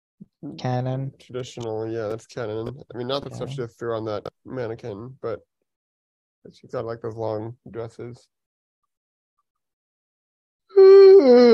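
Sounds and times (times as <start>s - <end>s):
speech: 0.4s - 5.5s, 6.4s - 8.4s, 10.8s - 11.5s
person yawning: 10.7s - 11.5s.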